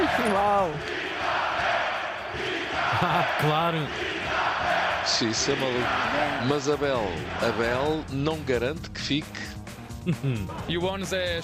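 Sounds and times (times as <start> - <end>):
stadium crowd chanting: 0.0 - 8.4
laughter: 2.8 - 3.5, 10.0 - 10.7
speech: 3.0 - 4.1, 5.0 - 11.4.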